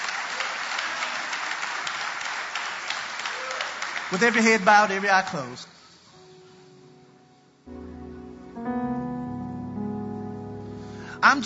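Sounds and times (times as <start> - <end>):
audience hand clapping: 0.0 - 5.7
speech: 4.1 - 5.7.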